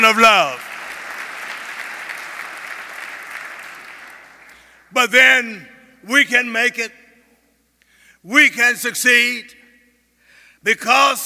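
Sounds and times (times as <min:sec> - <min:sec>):
speech: 0:00.0 - 0:00.7, 0:04.9 - 0:07.0, 0:08.2 - 0:09.6, 0:10.6 - 0:11.2
audience applause: 0:00.0 - 0:04.8.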